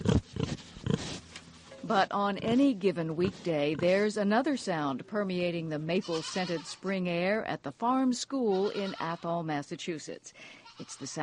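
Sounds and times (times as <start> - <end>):
farm animals grunting: 0.0 - 1.2
speech: 1.9 - 11.2.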